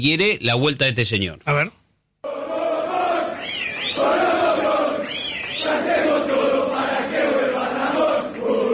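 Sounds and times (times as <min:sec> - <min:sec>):
speech: 0:00.0 - 0:01.8
football fans chanting and shouting in hall: 0:02.2 - 0:08.7.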